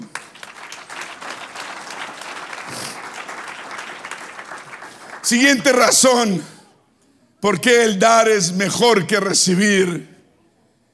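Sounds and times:
audience applauding: 0.0 - 5.8
speech: 5.3 - 6.5, 7.4 - 10.1.

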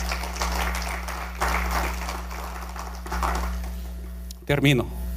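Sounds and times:
crowd clapping: 0.0 - 4.1
speech: 4.5 - 5.0.

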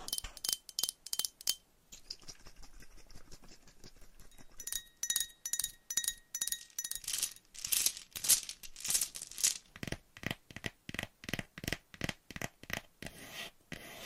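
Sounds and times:
tapping: 0.1 - 1.6, 4.3 - 12.5
scratching: 3.8 - 12.8.

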